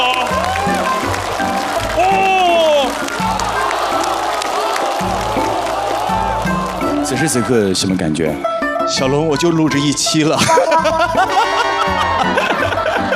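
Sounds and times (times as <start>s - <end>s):
audience cheering with whoops and whistles: 0.0s - 7.2s
studio audience applause: 0.0s - 7.6s, 11.4s - 13.1s
person exclaiming: 2.0s - 3.0s
speech: 7.2s - 12.5s
laughter: 10.3s - 13.1s.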